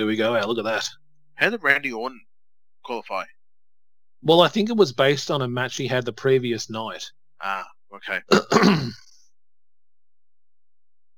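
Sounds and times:
speech: 0.0 - 3.4, 4.2 - 9.1
cough: 8.3 - 9.2.

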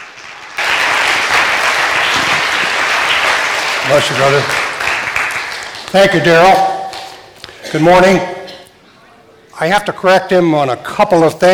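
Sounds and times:
audience applause: 0.0 - 6.2
speech: 3.9 - 4.6, 5.9 - 6.7, 7.7 - 8.4, 9.6 - 11.5.

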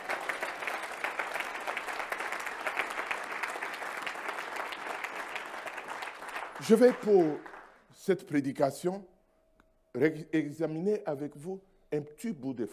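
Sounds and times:
church congregation applauding to acclaim the Lord: 0.0 - 8.0
speech: 6.6 - 9.1, 10.0 - 12.7.

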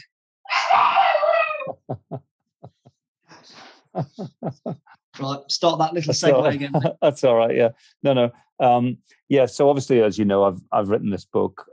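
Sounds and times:
dogs whining after being shut out: 0.5 - 1.9
laughter: 1.6 - 2.8, 4.0 - 4.8, 6.1 - 11.1
speech: 3.5 - 11.7.

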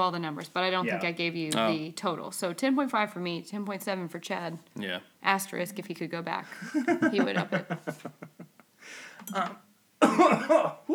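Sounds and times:
speech: 0.0 - 10.9
laughter: 6.5 - 8.6
person coughing after breathing in the wrong way: 10.0 - 10.9.

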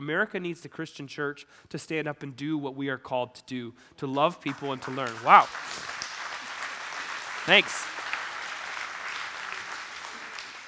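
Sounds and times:
speech: 0.0 - 6.0, 7.4 - 7.9
audience clapping: 4.6 - 10.6.

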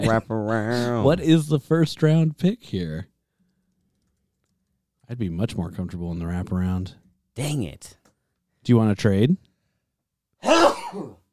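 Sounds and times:
speech: 0.0 - 3.1, 5.1 - 8.0, 8.6 - 9.5, 10.4 - 11.2
loud sneeze: 10.4 - 11.2.

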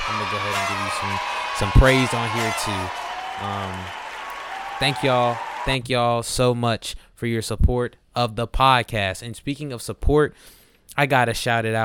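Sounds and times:
applause: 0.0 - 5.8
speech: 0.1 - 4.0, 4.8 - 11.8.

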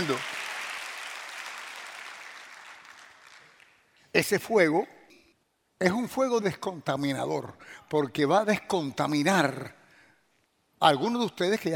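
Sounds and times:
speech: 0.0 - 0.4, 4.2 - 5.0, 5.8 - 9.8, 10.8 - 11.7
audience applause: 0.0 - 3.8.

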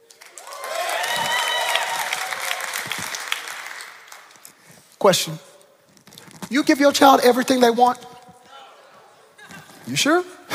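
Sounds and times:
crowd cheering: 0.0 - 4.4
speech: 5.0 - 5.5, 6.5 - 8.1, 9.9 - 10.4.

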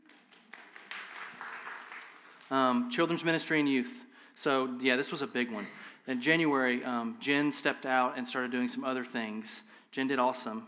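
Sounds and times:
audience golf clap: 0.0 - 2.6
speech: 2.5 - 10.6.

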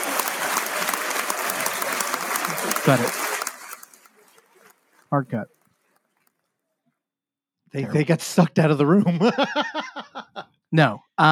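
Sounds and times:
laughter: 0.0 - 4.1, 7.8 - 10.6
audience applause: 0.0 - 6.3
speech: 2.8 - 3.2, 5.1 - 5.6, 7.7 - 11.3.

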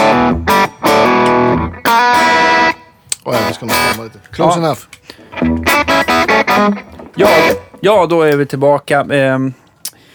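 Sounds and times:
electric guitar played through a Honeybee fuzz pedal: 0.0 - 4.0, 5.2 - 8.4
speech: 3.6 - 9.6.

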